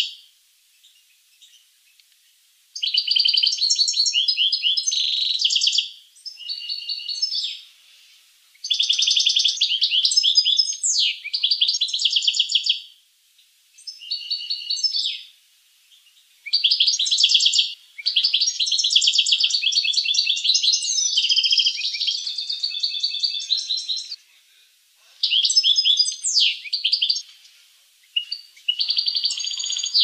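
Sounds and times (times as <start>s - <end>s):
finch singing trills and chattering notes: 2.8s - 7.6s, 8.5s - 12.8s, 13.8s - 15.3s, 15.9s - 24.2s, 25.2s - 30.0s.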